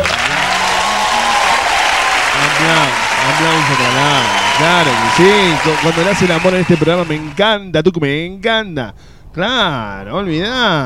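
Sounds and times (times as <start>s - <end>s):
studio applause: 0.0s - 7.5s
speech: 3.4s - 10.8s.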